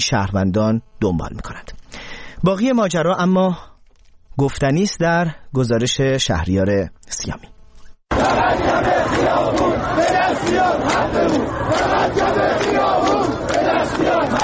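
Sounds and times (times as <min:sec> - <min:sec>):
speech: 0:00.0 - 0:01.7, 0:02.4 - 0:03.7, 0:04.4 - 0:07.5
crowd of protesters chanting slogans: 0:08.1 - 0:14.4.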